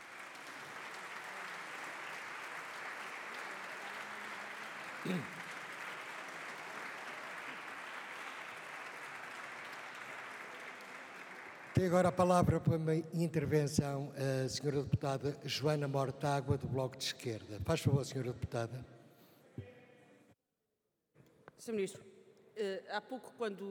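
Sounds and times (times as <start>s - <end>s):
applause in parliament gallery: 0.0s - 13.5s
speech: 5.0s - 5.4s, 11.8s - 19.0s, 21.6s - 23.7s.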